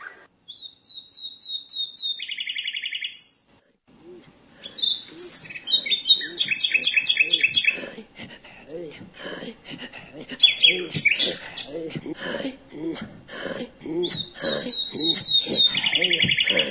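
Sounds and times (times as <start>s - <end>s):
common nightingale singing: 0.0s - 3.4s, 4.0s - 8.0s, 10.3s - 11.9s, 13.9s - 16.7s
laughter: 4.0s - 16.7s.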